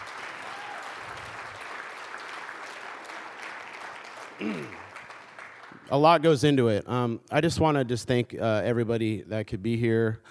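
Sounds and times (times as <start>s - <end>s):
audience applause: 0.0s - 6.0s
speech: 4.4s - 4.8s, 5.9s - 10.3s.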